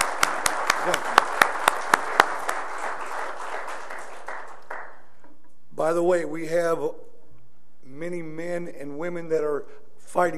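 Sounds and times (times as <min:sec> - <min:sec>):
audience applause: 0:00.0 - 0:05.2
speech: 0:05.9 - 0:07.0, 0:08.0 - 0:10.3.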